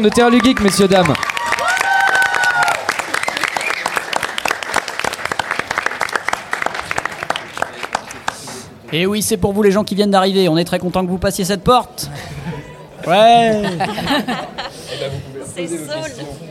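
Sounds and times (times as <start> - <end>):
speech: 0.0 - 1.3, 8.9 - 12.2, 13.0 - 16.5
audience applause: 0.0 - 8.8
laughter: 12.1 - 15.4.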